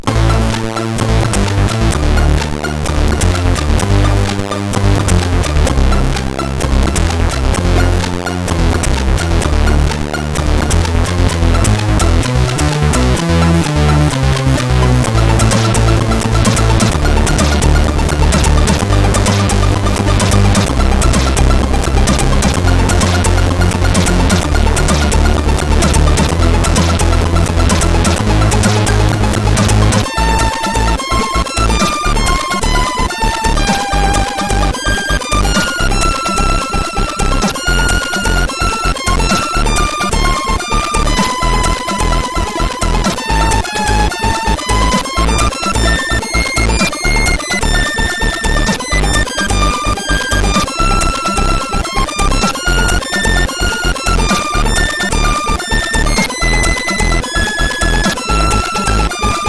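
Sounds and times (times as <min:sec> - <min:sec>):
tune on SID CSG8580R5 chip: 0:00.0 - 0:59.4.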